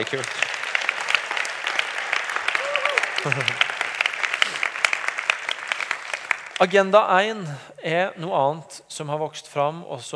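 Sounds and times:
speech: 0:00.0 - 0:00.5, 0:03.2 - 0:03.7, 0:06.6 - 0:10.1
audience applause: 0:00.0 - 0:06.8
laughter: 0:02.6 - 0:03.7.

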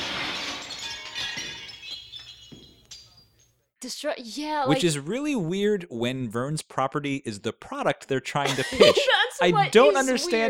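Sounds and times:
window glass shattering: 0:00.0 - 0:03.5
falling glass shards clinking: 0:00.0 - 0:03.6
speech: 0:03.9 - 0:10.4
laughter: 0:08.4 - 0:10.4.

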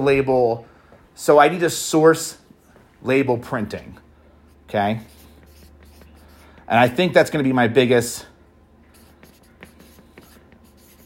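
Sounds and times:
speech: 0:00.0 - 0:02.4, 0:03.0 - 0:04.0, 0:04.7 - 0:05.2, 0:06.7 - 0:08.3
pen scratching on paper: 0:05.0 - 0:07.0, 0:08.9 - 0:11.0.

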